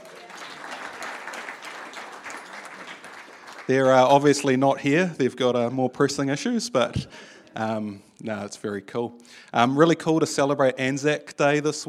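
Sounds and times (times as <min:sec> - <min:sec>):
audience clapping: 0:00.0 - 0:04.6
speech: 0:03.7 - 0:11.8.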